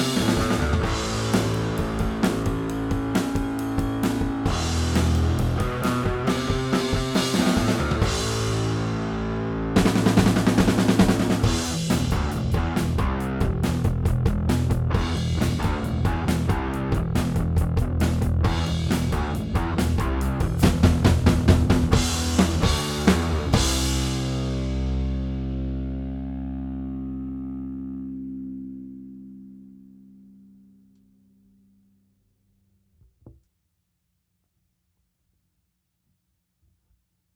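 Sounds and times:
drums: 0.0s - 26.4s
bass: 0.0s - 32.9s.

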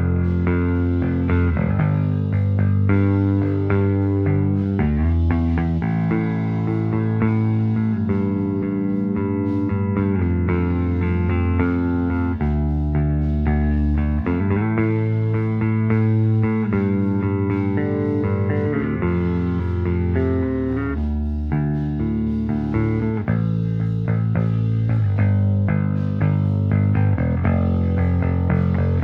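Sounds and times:
bass recorded in mono with D112 microphone: 0.0s - 29.0s.

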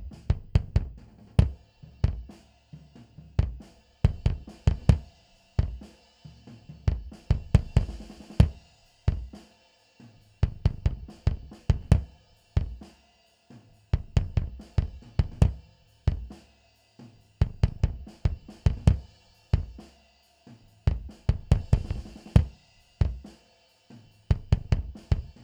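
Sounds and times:
bass drum: 0.0s - 2.4s, 3.0s - 5.9s, 6.5s - 9.4s, 10.4s - 12.9s, 13.9s - 16.4s, 17.4s - 19.9s, 20.8s - 23.3s, 24.3s - 25.4s.

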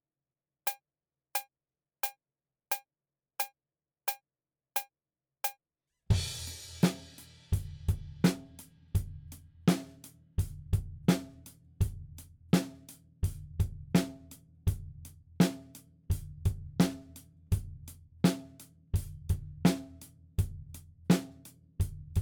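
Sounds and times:
drums: 6.1s - 22.1s.

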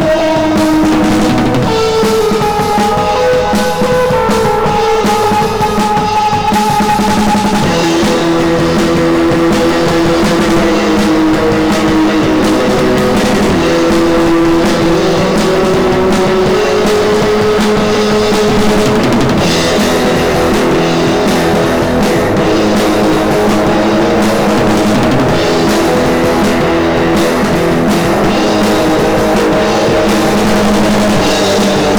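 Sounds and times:
overdriven monitor mix: 0.0s - 31.9s.

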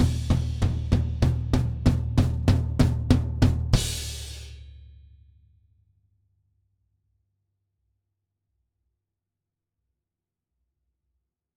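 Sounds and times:
drums: 0.0s - 5.0s.

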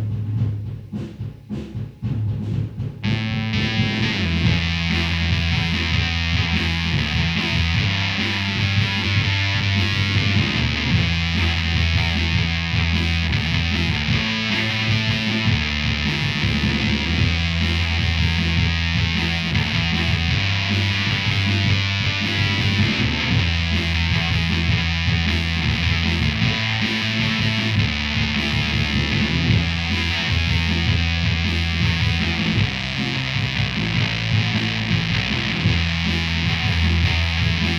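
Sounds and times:
bass guitar through amp recorded with M160 microphone: 0.0s - 37.7s.

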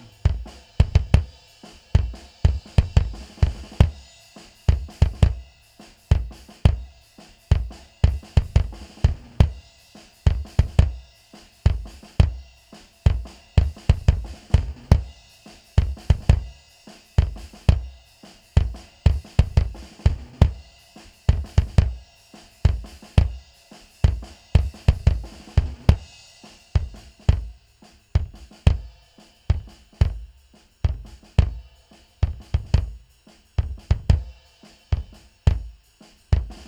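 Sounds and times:
bass drum: 0.0s - 4.0s, 4.7s - 5.4s, 6.1s - 6.9s, 7.5s - 9.6s, 10.3s - 11.0s, 11.6s - 12.5s, 13.1s - 15.2s, 15.8s - 16.6s, 17.2s - 18.0s, 18.6s - 20.6s, 21.3s - 22.0s, 22.6s - 23.4s, 24.0s - 36.6s.

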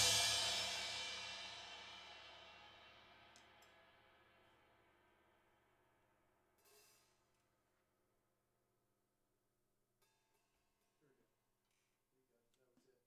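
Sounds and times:
drums recorded overhead in stereo: 0.0s - 3.8s.

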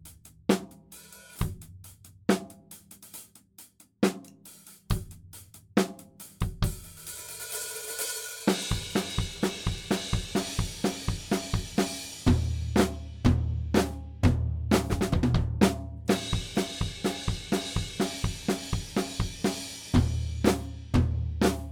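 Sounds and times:
drums: 0.0s - 21.7s.

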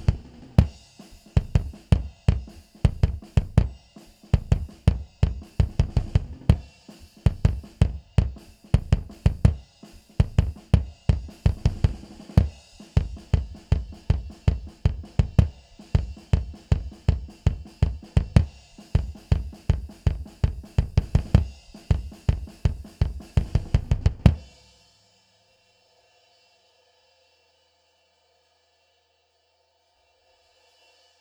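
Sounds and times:
bass drum: 0.0s - 24.5s.

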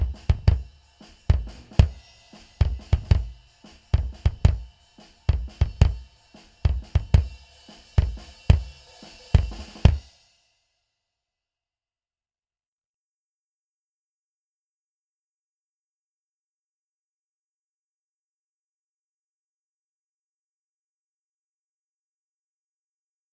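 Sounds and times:
bass drum: 0.0s - 10.1s.

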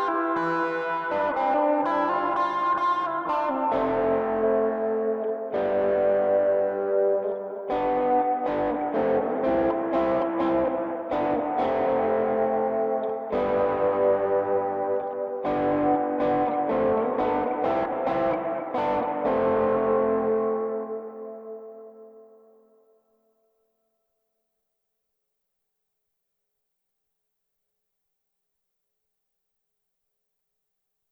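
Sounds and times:
guitar recorded through a DI line: 0.0s - 23.0s.

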